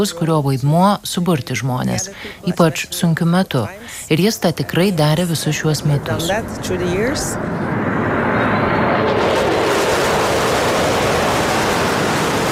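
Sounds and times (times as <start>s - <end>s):
speech: 0.0s - 7.8s
fighter jets passing overhead on the day of a royal state funeral in Oslo: 4.9s - 12.5s.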